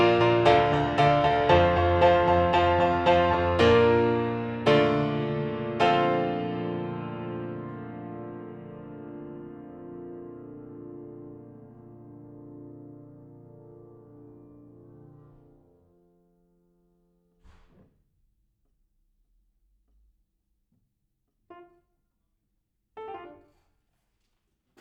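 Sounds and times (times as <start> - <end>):
piano: 0.0 - 17.9, 21.4 - 22.0, 22.9 - 23.9.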